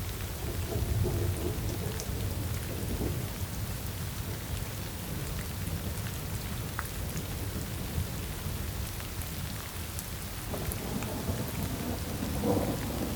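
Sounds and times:
steady rain downpour: 0.0 - 13.1
thunder: 10.5 - 13.1.

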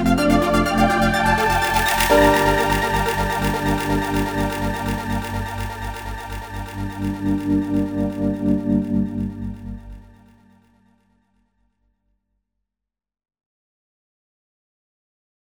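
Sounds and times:
instrumental remix: 0.2 - 10.2.

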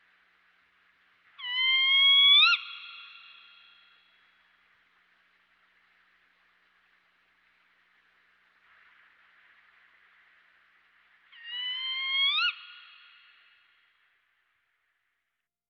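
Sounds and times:
Spotted Owl of Western North America calling: 1.4 - 4.1, 11.3 - 13.6.

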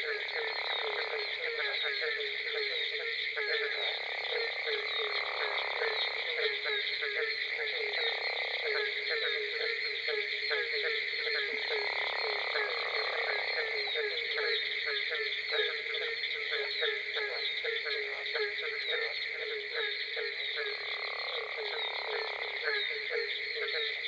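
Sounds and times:
Barking Treefrog calling: 0.0 - 24.0
Gopher Frog calling: 0.0 - 24.0.

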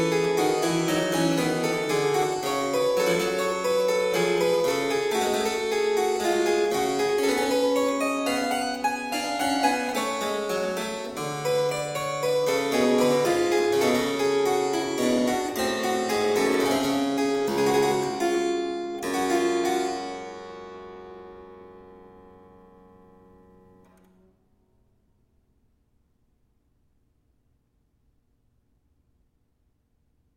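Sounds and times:
keyboard piece in G minor: 0.0 - 24.0.

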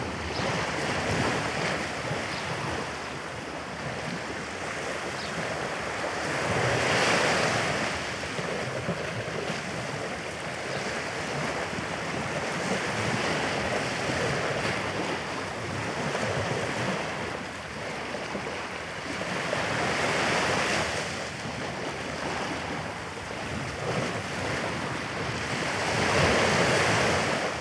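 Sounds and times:
waves breaking along the shore: 0.0 - 27.6.

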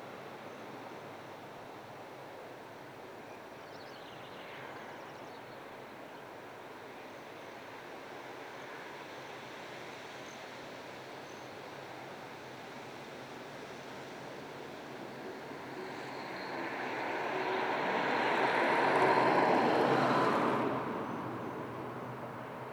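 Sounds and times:
cars passing on a distant highway: 13.6 - 22.7.

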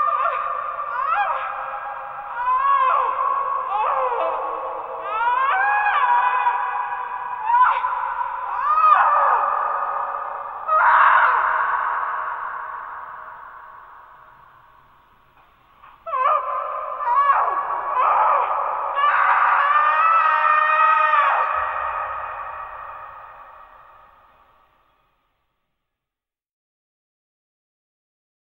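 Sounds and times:
distant tortured screams: 0.0 - 14.7, 15.8 - 24.7.

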